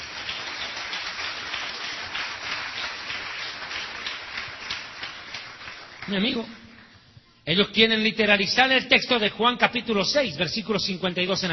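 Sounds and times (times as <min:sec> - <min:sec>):
audience applauding: 0:00.0 - 0:07.0
speech: 0:06.1 - 0:06.6, 0:07.5 - 0:11.5.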